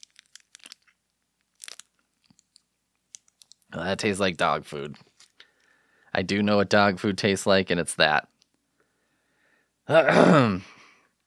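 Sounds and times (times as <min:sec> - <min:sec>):
hard lollipop candy being bitten and chewed: 0:00.0 - 0:03.8
speech: 0:03.7 - 0:05.1, 0:06.2 - 0:08.3, 0:09.9 - 0:10.8.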